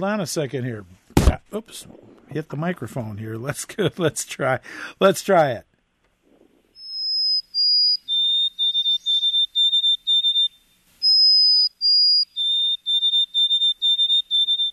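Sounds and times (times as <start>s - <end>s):
speech: 0.0s - 5.7s
white-throated sparrow song: 6.8s - 14.7s.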